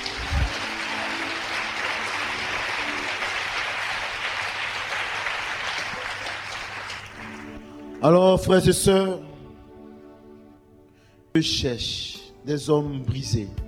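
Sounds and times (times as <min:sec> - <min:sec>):
audience applause: 0:00.0 - 0:08.0
speech: 0:08.0 - 0:09.3, 0:11.4 - 0:13.6.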